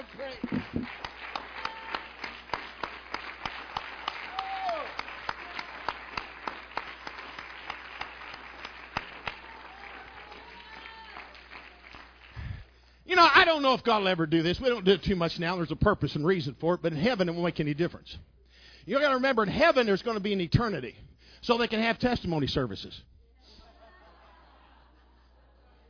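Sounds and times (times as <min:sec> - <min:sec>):
audience hand clapping: 0:00.0 - 0:12.7
speech: 0:00.2 - 0:00.9, 0:13.2 - 0:18.3, 0:18.9 - 0:23.1
laughter: 0:23.4 - 0:25.8.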